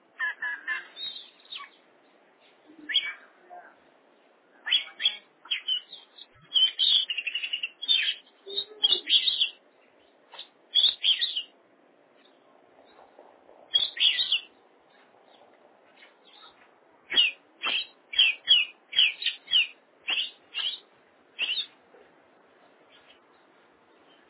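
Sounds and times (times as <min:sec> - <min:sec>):
oriental magpie-robin singing: 0:04.7 - 0:09.6, 0:10.7 - 0:11.5, 0:13.7 - 0:14.5, 0:17.1 - 0:20.8, 0:21.4 - 0:21.7.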